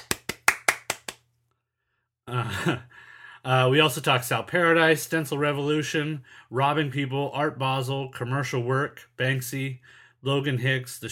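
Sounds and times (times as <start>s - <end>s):
clapping sound effect: 0.0s - 1.3s
speech: 2.3s - 11.0s.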